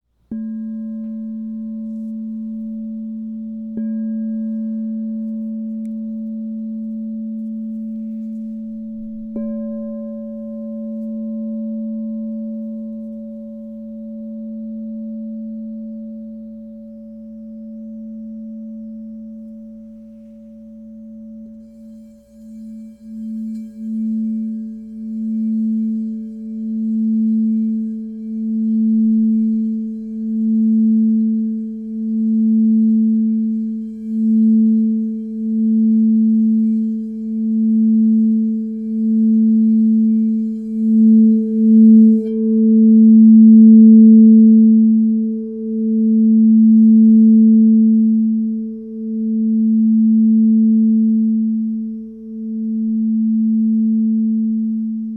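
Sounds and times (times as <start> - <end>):
crystal singing bowls ringing: 0.3 - 55.1.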